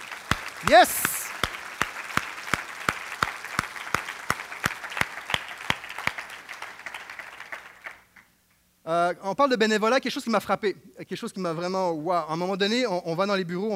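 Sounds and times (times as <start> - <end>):
audience applause: 0.0 - 8.1
unison rhythmic clapping: 0.0 - 8.3
speech: 0.6 - 1.1, 8.9 - 13.7.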